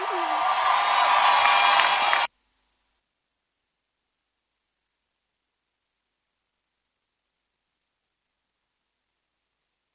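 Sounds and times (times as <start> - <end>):
church congregation applauding and cheering during a service: 0.0 - 2.3.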